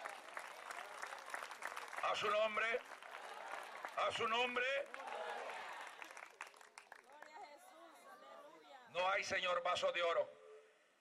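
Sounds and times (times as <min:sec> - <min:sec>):
audience applauding: 0:00.0 - 0:07.4
speech: 0:02.1 - 0:03.0, 0:04.0 - 0:05.0, 0:08.9 - 0:10.4.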